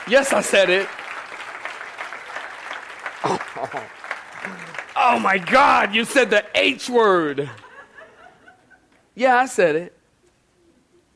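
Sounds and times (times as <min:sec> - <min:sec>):
raised voices and cheers: 0:00.0 - 0:06.1
audience clapping hands: 0:00.0 - 0:07.9
speech: 0:00.1 - 0:01.0, 0:03.2 - 0:07.6, 0:09.2 - 0:10.0
laughter: 0:03.2 - 0:04.8, 0:07.4 - 0:09.0.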